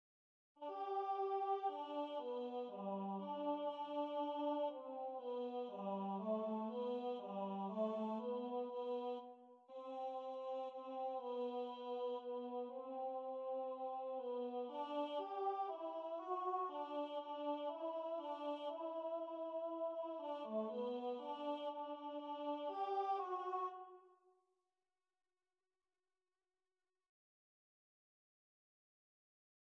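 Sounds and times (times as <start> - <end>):
tenor choir singing: 0.6 - 23.8.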